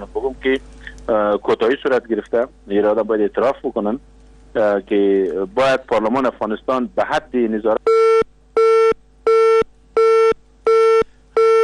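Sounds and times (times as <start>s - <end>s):
speech: 0.0s - 8.0s
telephone busy signal beeps after a dropped call: 7.9s - 11.6s.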